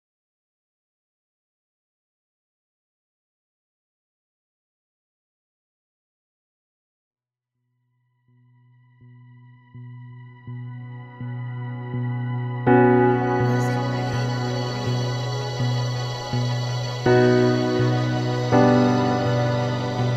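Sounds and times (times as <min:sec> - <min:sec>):
ambient piano space soundscape: 0:09.2 - 0:20.1.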